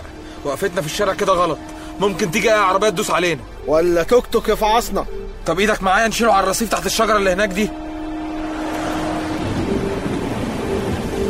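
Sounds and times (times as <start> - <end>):
heavy rain pouring down on a street: 0.0 - 11.2
speech: 0.4 - 7.9.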